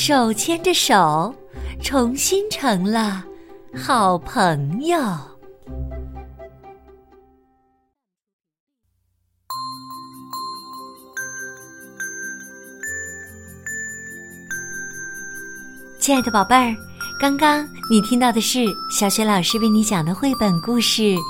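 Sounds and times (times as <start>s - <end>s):
speech: 0.0s - 5.8s, 16.0s - 21.2s
crisp jingling bells as sheep leave: 9.5s - 21.2s.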